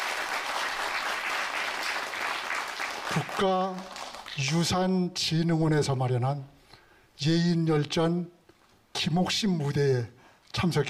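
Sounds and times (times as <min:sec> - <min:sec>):
audience applause: 0:00.0 - 0:04.4
speech: 0:03.1 - 0:06.6, 0:07.2 - 0:08.4, 0:09.0 - 0:10.8.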